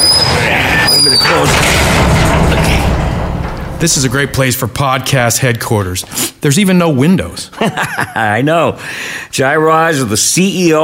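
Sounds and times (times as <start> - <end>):
brief higher squeaks of garage door: 0.0 - 4.1
loud steady mechanical roar of garage door: 0.0 - 4.5
heavy garage door closing: 0.0 - 5.4
speech: 3.8 - 10.8
laughter: 7.5 - 8.4.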